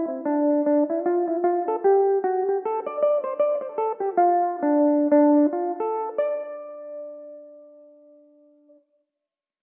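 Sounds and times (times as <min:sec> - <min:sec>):
Irish mandolin in D dorian: 0:00.0 - 0:07.4.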